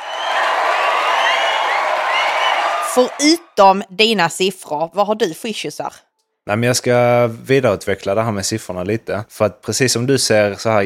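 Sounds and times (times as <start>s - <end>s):
crowd applause and cheering: 0.0s - 3.6s
speech: 3.0s - 10.8s.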